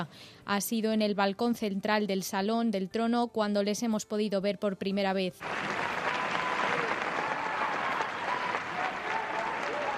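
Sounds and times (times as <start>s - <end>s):
speech: 0.0s - 6.0s
warm applause from standing audience: 5.4s - 9.9s.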